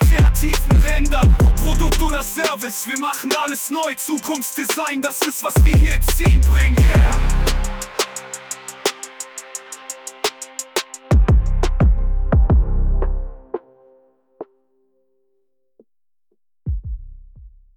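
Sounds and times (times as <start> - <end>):
German hip hop song: 0.0 - 13.6.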